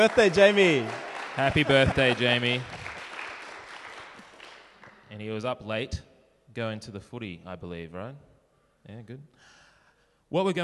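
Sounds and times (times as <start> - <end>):
speech: 0.0 - 2.8, 5.2 - 9.6, 10.3 - 10.6
audience applause: 0.0 - 5.0.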